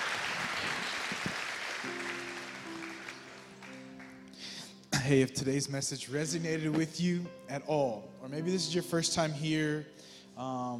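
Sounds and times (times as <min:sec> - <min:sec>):
audience clapping hands: 0:00.0 - 0:04.4
speech: 0:05.0 - 0:10.7.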